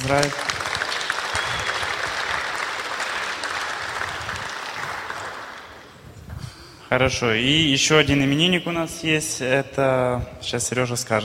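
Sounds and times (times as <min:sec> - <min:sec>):
audience applause: 0:00.0 - 0:06.0
speech: 0:00.1 - 0:00.4, 0:06.9 - 0:11.2.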